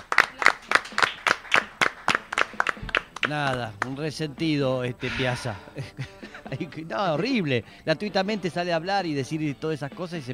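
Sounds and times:
applause: 0.0 - 4.0
speech: 3.3 - 10.3
laughter: 5.6 - 6.8.

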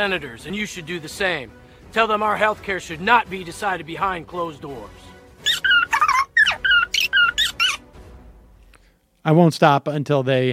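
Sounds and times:
speech: 0.0 - 5.1, 9.2 - 10.5
cartoon squirrel squeaking in an ad: 5.4 - 7.9.

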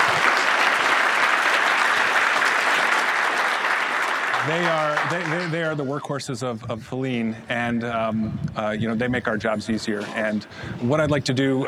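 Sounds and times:
crowd applauding: 0.0 - 5.8
speech: 4.5 - 11.6.

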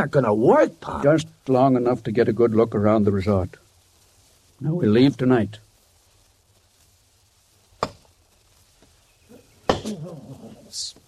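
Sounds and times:
speech: 0.0 - 3.6, 4.6 - 5.6
axe chopping wood: 7.8 - 8.0, 9.7 - 9.9.

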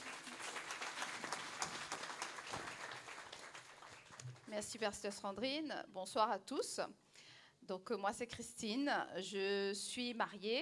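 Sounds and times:
audience applauding a speaker: 0.0 - 4.5
speech: 4.5 - 7.0, 7.7 - 10.6.

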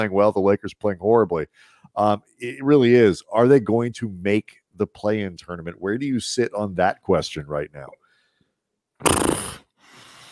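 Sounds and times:
speech: 0.0 - 8.0, 9.0 - 9.4
person imitating horse noises: 9.0 - 9.8.

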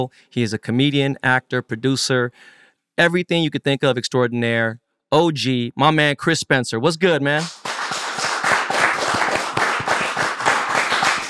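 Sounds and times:
speech: 0.0 - 7.6
group of people clapping: 7.4 - 11.2.

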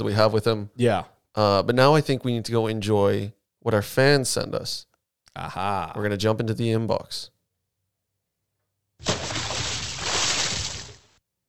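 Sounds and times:
speech: 0.0 - 7.3
big splash sound effect: 9.0 - 11.2.

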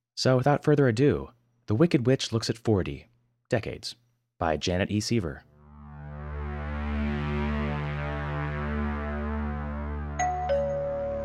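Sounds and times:
speech: 0.2 - 5.5
droning musical tone: 5.7 - 11.2
doorbell ding-dong chime: 10.2 - 11.2.

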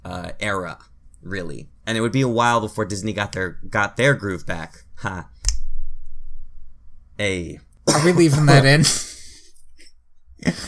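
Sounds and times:
speech: 0.4 - 5.3, 7.2 - 9.1, 10.4 - 10.6
person coughing: 7.9 - 9.3.

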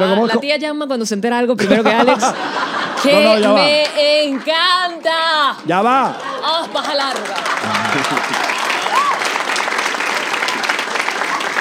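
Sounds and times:
speech: 0.0 - 9.1
laughter: 1.6 - 4.2, 5.8 - 9.1
audience clapping: 2.9 - 11.5.

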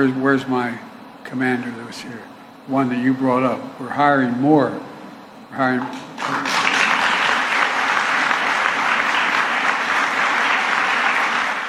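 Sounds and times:
speech: 0.0 - 4.9, 5.5 - 6.6
crowd applause: 5.9 - 11.6.

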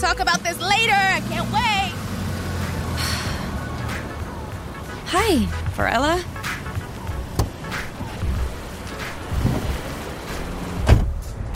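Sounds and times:
car pulling up with low engine rumble: 0.0 - 11.5
speech: 5.1 - 6.4
sharp thumps: 6.6 - 9.8.

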